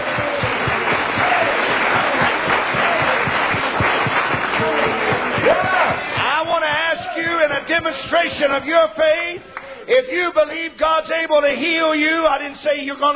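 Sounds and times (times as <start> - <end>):
audience clapping hands: 0.0 - 9.7
voices calling out and cheering: 0.0 - 10.5
crowd noise: 0.0 - 11.2
speech: 7.8 - 13.1.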